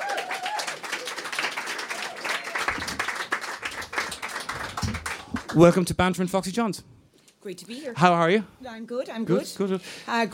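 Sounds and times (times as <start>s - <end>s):
audience applause: 0.0s - 5.9s
speech: 5.6s - 10.3s.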